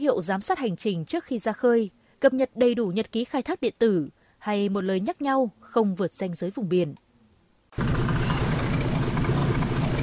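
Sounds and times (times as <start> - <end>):
speech: 0.0 - 7.0
loud fishing boat engines rumbling: 7.8 - 10.0.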